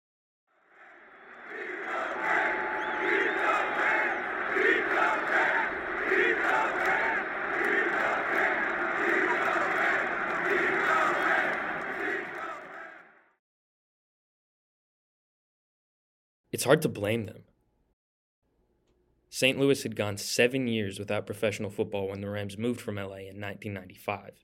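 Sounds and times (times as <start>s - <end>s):
50,000 football fans cheering at the Edward Jones Dome: 0.5s - 13.4s
speech: 16.6s - 17.5s, 19.4s - 24.4s.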